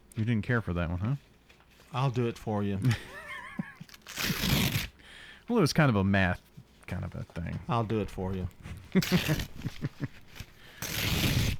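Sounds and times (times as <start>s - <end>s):
speech: 0.2s - 1.3s, 1.9s - 3.2s, 5.5s - 10.2s
laughter: 2.9s - 3.9s, 8.9s - 10.2s
paper being torn up: 3.8s - 5.0s, 8.3s - 11.5s.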